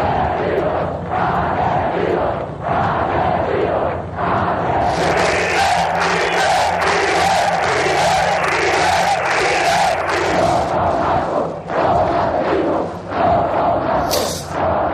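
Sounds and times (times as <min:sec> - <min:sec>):
protest crowd chanting murderers in Spanish: 0:00.0 - 0:14.9
crowd clapping: 0:04.9 - 0:10.8.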